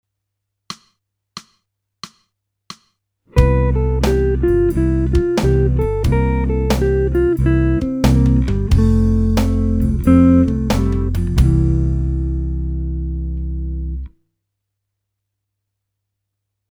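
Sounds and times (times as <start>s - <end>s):
jazz music: 3.4s - 13.1s.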